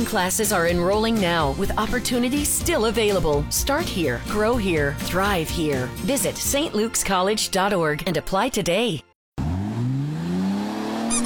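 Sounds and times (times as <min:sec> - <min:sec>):
speech: 0:00.0 - 0:09.1
car tires squealing: 0:09.4 - 0:11.2.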